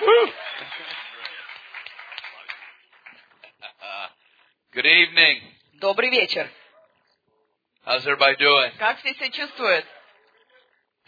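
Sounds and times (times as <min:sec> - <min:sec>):
audience applause at a church service welcoming a speaker: 0:00.0 - 0:03.6
speech: 0:04.8 - 0:06.6, 0:07.9 - 0:10.0.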